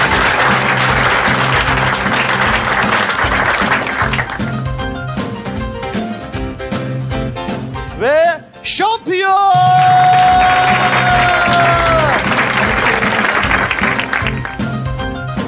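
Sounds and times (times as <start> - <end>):
audience applause: 0.0 - 4.5, 9.6 - 14.8
music with a steady beat: 0.0 - 8.1, 9.6 - 15.4.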